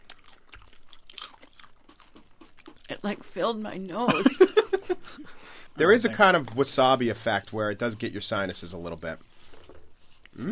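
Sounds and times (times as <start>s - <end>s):
crunching and chewing original flavor bacon salt: 0.0s - 3.2s
speech: 2.9s - 9.3s, 10.4s - 10.5s.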